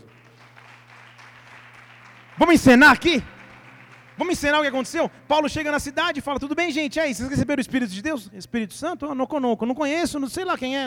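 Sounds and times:
audience applauding: 0:00.0 - 0:06.9
low constant hum: 0:00.0 - 0:10.8
speech: 0:02.4 - 0:03.3, 0:04.2 - 0:10.8.

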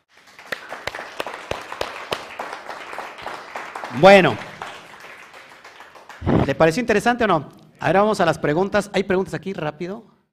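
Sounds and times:
applause: 0:00.0 - 0:07.0
speech: 0:03.9 - 0:04.4, 0:06.5 - 0:10.1.

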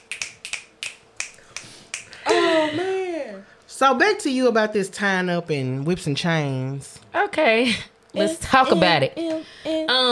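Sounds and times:
finger snapping: 0:00.0 - 0:02.2
speech: 0:02.7 - 0:10.0.

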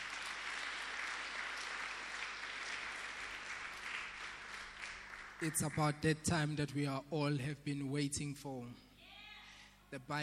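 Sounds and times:
audience applause: 0:00.0 - 0:05.8
speech: 0:05.4 - 0:08.9, 0:09.9 - 0:10.2.

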